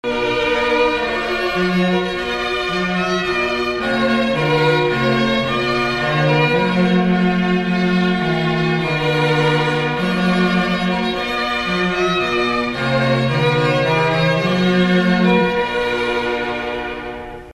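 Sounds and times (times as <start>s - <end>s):
trumpet piece: 0.0s - 17.5s.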